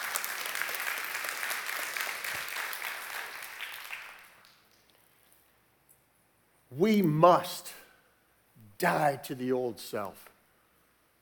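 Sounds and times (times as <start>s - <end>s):
audience clapping: 0.0s - 4.9s
speech: 6.7s - 7.8s, 8.8s - 10.3s.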